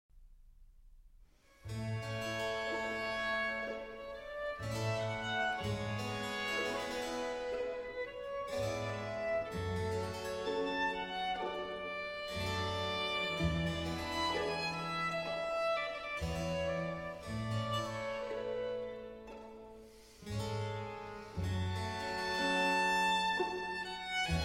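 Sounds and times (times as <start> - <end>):
slow violin concerto movement in G minor: 1.5 - 24.4.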